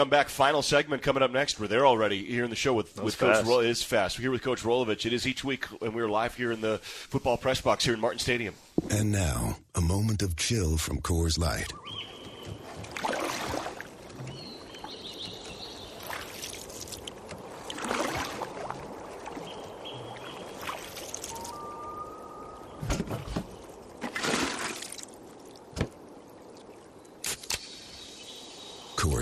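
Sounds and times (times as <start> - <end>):
speech: 0.0 - 12.0
water lapping and splashing around a canoe drifting on calm water: 11.7 - 29.0.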